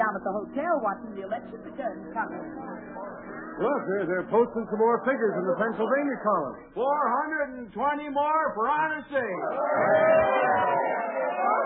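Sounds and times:
speech: 0.2 - 11.6
crowd chatter in a packed Springfield hotel lobby on election night: 2.8 - 6.8, 9.3 - 11.6.

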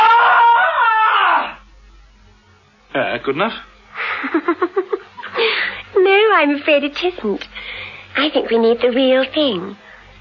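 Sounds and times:
woman's blood-curdling scream: 0.0 - 1.6
speech: 3.2 - 7.5, 8.2 - 9.8
laughter: 4.0 - 5.7.

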